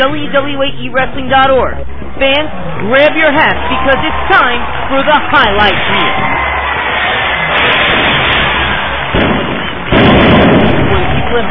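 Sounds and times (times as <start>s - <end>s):
speech: 0.0s - 6.3s
fireworks exploding at wrestling entrance: 5.7s - 11.5s.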